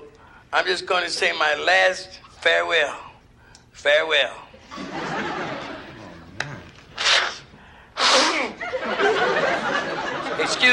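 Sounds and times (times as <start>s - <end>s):
speech: 0.5s - 3.1s, 3.8s - 5.1s
laughter: 4.6s - 7.0s, 8.4s - 10.7s
person blowing nose: 6.0s - 8.6s.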